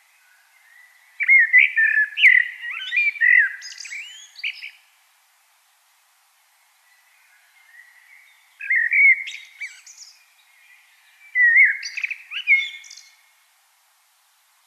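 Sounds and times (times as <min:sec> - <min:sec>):
common blackbird singing warbled phrases: 0:00.2 - 0:04.9, 0:06.9 - 0:13.3.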